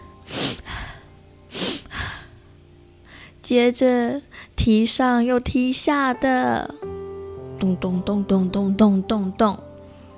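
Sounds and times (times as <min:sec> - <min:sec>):
person imitating sniffling: 0:00.3 - 0:02.3
speech: 0:03.5 - 0:06.9, 0:07.6 - 0:09.7.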